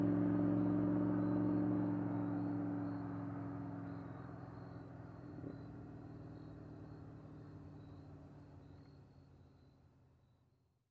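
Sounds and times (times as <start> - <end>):
1982 Z28 driving away fast: 0.0 - 3.6.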